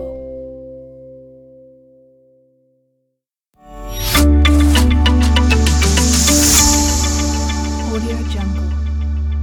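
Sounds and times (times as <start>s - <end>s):
elegant logo reveal: 3.7s - 9.3s.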